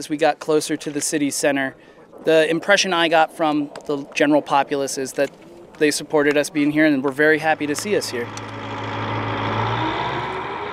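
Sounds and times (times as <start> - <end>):
speech: 0.0 - 8.6
Bradley armored vehicle engine droning while driving through sand: 7.1 - 10.7.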